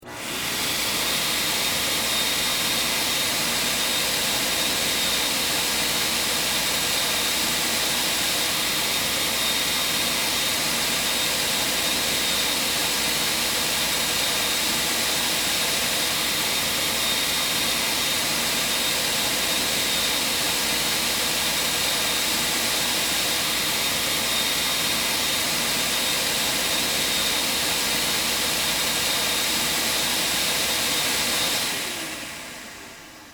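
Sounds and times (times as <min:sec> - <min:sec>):
theatrical stage snow machine running: 0:00.0 - 0:33.3.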